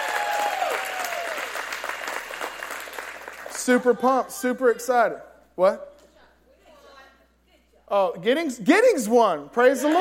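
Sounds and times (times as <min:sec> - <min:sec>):
audience clapping: 0:00.0 - 0:03.8
speech: 0:03.7 - 0:05.9, 0:07.9 - 0:09.9.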